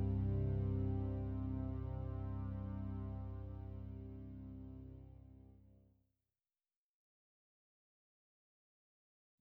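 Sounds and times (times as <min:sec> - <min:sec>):
C drone improvisation for classical musicians: 0:00.0 - 0:05.4.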